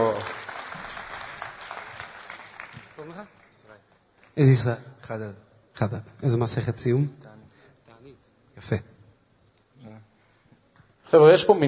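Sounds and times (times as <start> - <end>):
group clapping: 0.0 - 4.7
speech: 4.4 - 7.3, 8.7 - 8.9, 11.1 - 11.6.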